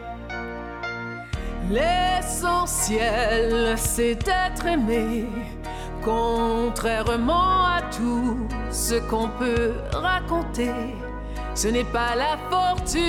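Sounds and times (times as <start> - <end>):
person singing with many nuances in the voice: 1.2 - 13.0.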